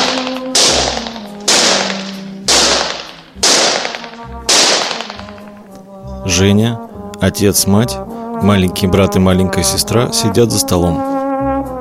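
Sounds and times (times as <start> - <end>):
gunshots at German-soldier-shaped targets in a shooting gallery: 0.0 - 5.7
soft tonal background: 0.0 - 11.1
speech: 6.3 - 11.1.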